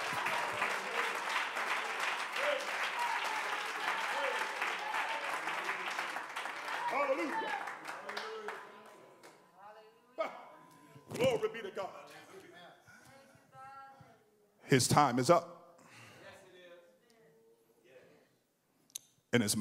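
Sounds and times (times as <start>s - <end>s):
crowd clapping hands: 0.0s - 9.4s
speech: 14.7s - 15.5s, 19.4s - 19.5s.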